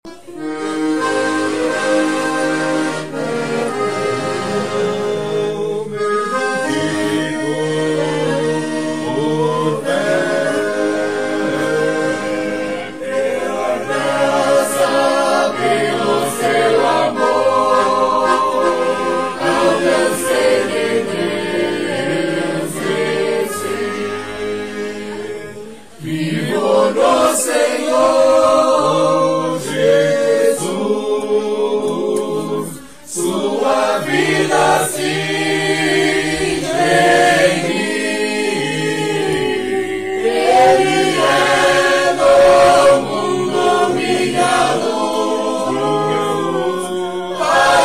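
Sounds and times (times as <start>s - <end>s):
accordion: 0.0s - 47.8s
sung hymn: 0.1s - 47.8s.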